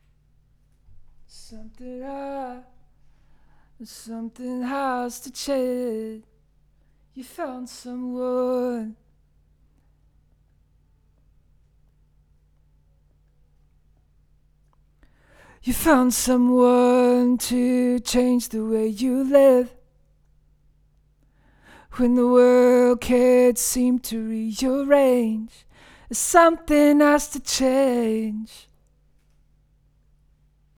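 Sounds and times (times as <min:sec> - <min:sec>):
vocals: 0:00.9 - 0:09.3, 0:15.0 - 0:20.2, 0:21.4 - 0:28.9.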